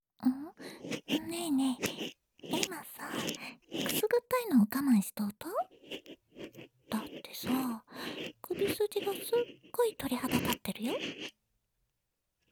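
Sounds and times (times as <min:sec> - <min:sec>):
ear cleaning of the right ear: 0:00.4 - 0:05.3, 0:06.9 - 0:11.2.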